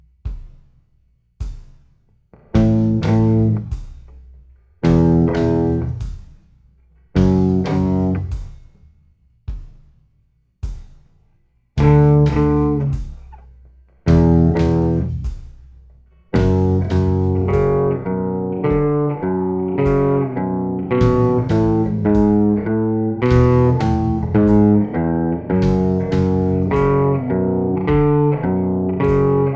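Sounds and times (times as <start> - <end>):
slow guitar riff: 2.5 - 3.7, 4.8 - 6.0, 7.2 - 8.3, 11.8 - 13.0, 14.1 - 15.3, 16.3 - 29.5.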